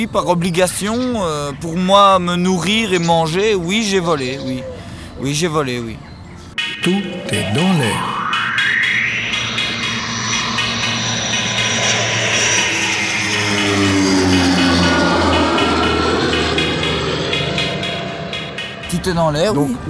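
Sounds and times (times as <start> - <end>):
speech: 0.0 - 6.1, 6.8 - 8.2, 18.9 - 19.8
airplane engine flying overhead: 8.0 - 19.0.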